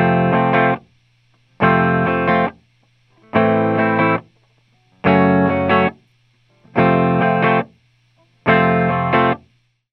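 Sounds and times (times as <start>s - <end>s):
clean electric guitar through amp, recorded with Lauten Audio Horizon LT-321 tube condenser: 0.0s - 0.9s, 1.6s - 9.5s.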